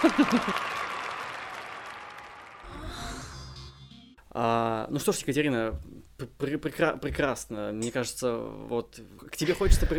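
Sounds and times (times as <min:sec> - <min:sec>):
laughter: 0:00.0 - 0:00.7
speech: 0:00.0 - 0:00.8, 0:04.4 - 0:09.9
ovation applause sound effect: 0:00.0 - 0:02.7.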